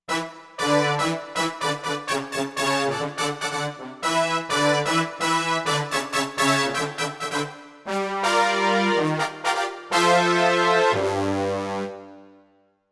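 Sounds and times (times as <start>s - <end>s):
brass section playing: 0.1s - 12.4s.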